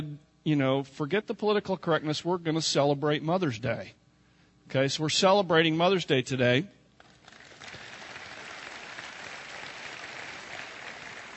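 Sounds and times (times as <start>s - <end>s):
speech: 0.4s - 4.0s, 4.7s - 6.8s
audience applause: 7.2s - 11.3s.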